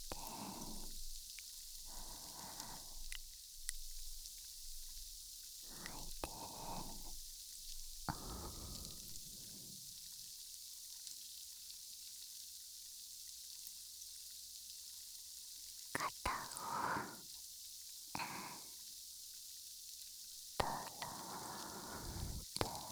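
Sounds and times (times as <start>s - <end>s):
fizzing carbonated drink: 0.0s - 10.3s, 16.0s - 17.3s, 20.4s - 22.8s.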